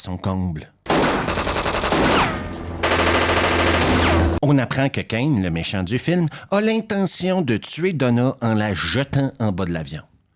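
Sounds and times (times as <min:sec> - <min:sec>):
speech: 0:00.0 - 0:00.8, 0:04.4 - 0:10.1
gunfire exchange on an airport runway: 0:00.9 - 0:04.4.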